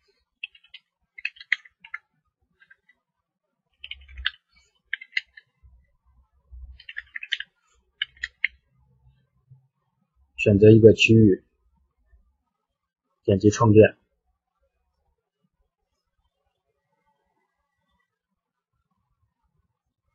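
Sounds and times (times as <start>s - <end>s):
computer keyboard typing: 0.4s - 3.0s, 3.8s - 5.6s, 6.6s - 8.6s
speech: 10.4s - 11.5s, 13.3s - 14.0s.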